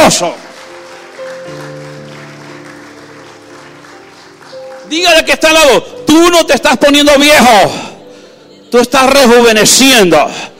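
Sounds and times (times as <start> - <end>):
applause: 0.0 - 5.8
speech: 0.1 - 0.4, 4.9 - 7.9, 8.7 - 10.5.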